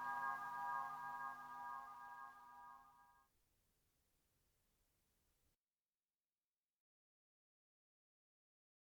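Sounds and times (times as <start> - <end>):
jingle: 0.0 - 3.0.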